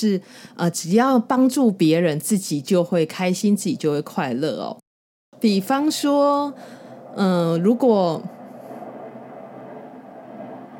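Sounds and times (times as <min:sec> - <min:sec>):
speech: 0:00.0 - 0:04.8, 0:05.4 - 0:08.4
airplane flying overhead: 0:05.4 - 0:10.7.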